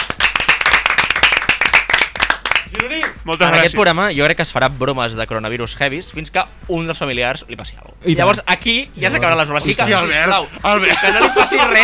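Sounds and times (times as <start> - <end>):
applause: 0.0 - 3.2
speech: 2.8 - 11.8
laughter: 10.0 - 11.8.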